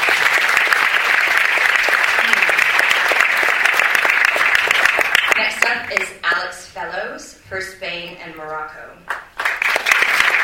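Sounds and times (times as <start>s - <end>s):
audience applause: 0.0s - 6.0s, 9.3s - 10.4s
speech: 7.2s - 9.2s.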